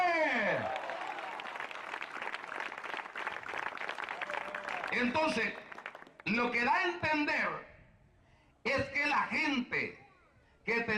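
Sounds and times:
audience applauding: 0.4s - 6.3s
speech: 5.0s - 5.6s, 6.3s - 7.7s, 8.6s - 10.0s, 10.6s - 10.9s.

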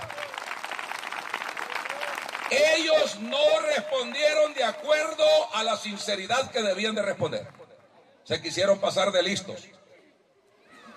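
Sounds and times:
congregation applauding at a Spanish-language church service: 0.0s - 5.2s
speech: 2.5s - 7.6s, 8.3s - 9.8s.

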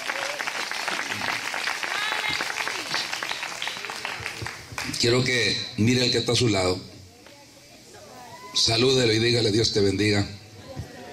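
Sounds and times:
audience applauding: 0.0s - 5.3s
speech: 5.0s - 6.9s, 8.6s - 10.4s.

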